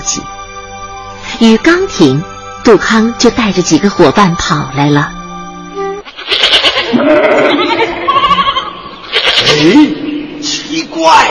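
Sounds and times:
speech: 0:00.1 - 0:00.4, 0:01.4 - 0:05.2, 0:06.3 - 0:07.8, 0:09.4 - 0:10.1, 0:10.8 - 0:11.2
goats bleating: 0:06.0 - 0:09.8.

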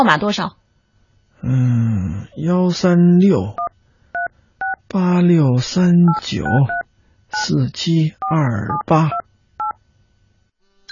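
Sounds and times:
speech: 0:00.0 - 0:00.6, 0:01.4 - 0:03.6, 0:04.9 - 0:09.2
quiet hum: 0:00.0 - 0:10.9
mobile phone keypad dialing tones: 0:06.1 - 0:06.8.

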